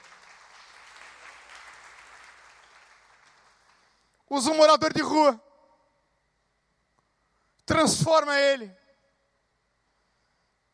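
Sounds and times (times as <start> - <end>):
church audience applause: 0.0 - 4.0
speech: 4.3 - 5.5, 7.8 - 8.8.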